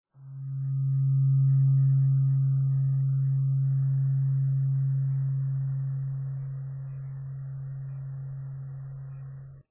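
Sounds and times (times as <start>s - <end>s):
Om tuning fork ringing: 0.2s - 9.6s.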